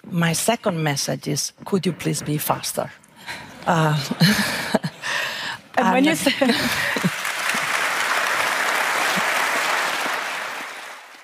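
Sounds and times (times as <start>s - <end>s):
speech: 0.1s - 4.9s, 5.8s - 7.1s
applause at an annual meeting: 6.6s - 11.2s.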